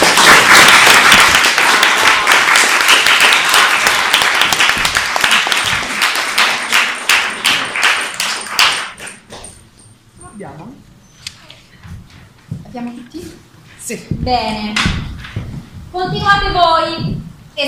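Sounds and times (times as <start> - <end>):
audience applause: 0.0 - 9.2
speech: 13.9 - 17.6.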